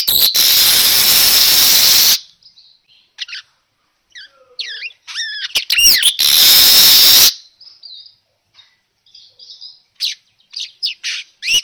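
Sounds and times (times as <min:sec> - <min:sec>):
manyar weaver lure call song: 0:00.0 - 0:03.5, 0:04.1 - 0:11.6.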